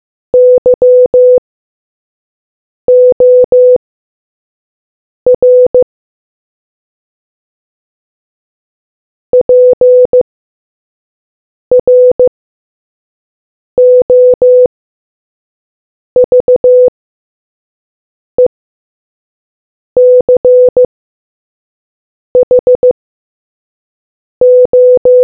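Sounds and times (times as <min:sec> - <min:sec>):
morse code beeps: 0:00.4 - 0:01.4, 0:02.9 - 0:03.8, 0:05.4 - 0:05.8, 0:09.4 - 0:10.2, 0:11.7 - 0:12.3, 0:13.8 - 0:14.7, 0:16.2 - 0:16.9, 0:20.0 - 0:20.9, 0:22.4 - 0:23.0, 0:24.4 - 0:25.2.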